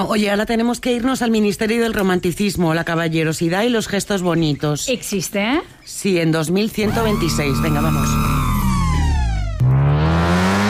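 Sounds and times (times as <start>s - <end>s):
speech: 0.0s - 8.4s
futuristic car synthetic whirring engine driving off: 6.8s - 10.6s
steady loud low hum: 6.9s - 10.6s.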